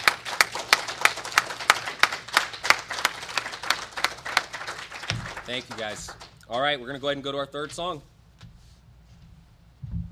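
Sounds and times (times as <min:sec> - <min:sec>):
roomful of people applauding: 0:00.0 - 0:06.5
speech: 0:05.5 - 0:08.1.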